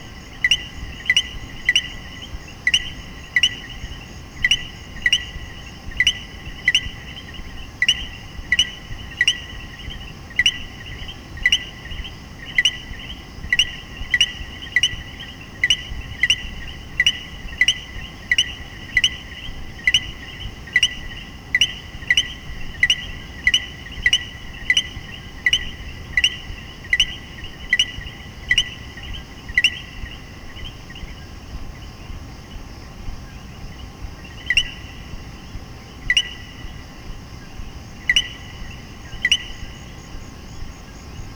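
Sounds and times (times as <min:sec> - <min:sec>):
steady chorus: 0:00.0 - 0:41.3.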